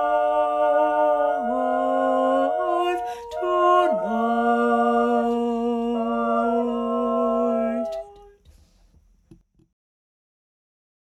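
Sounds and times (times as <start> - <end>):
sung version of a song: 0.0 - 8.4.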